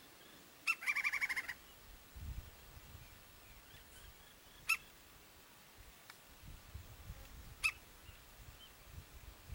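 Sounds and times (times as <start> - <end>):
woodpecker harsh chatter: 0.7 - 1.6.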